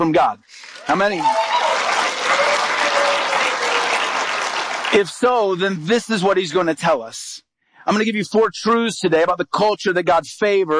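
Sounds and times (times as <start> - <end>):
speech: 0.0 - 1.5, 4.9 - 10.7
audience applause: 0.7 - 5.2.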